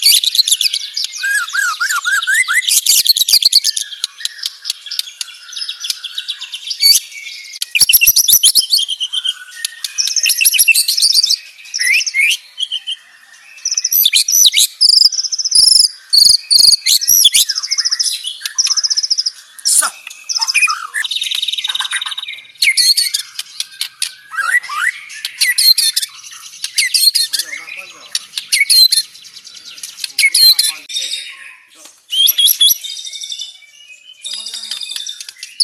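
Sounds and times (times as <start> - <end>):
murai bird singing from Lampung: 0.0 - 35.6.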